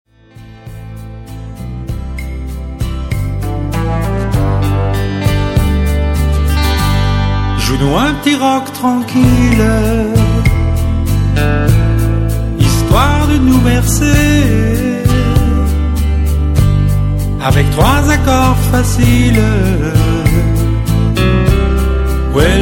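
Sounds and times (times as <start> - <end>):
calm rock music: 0.1 - 22.6.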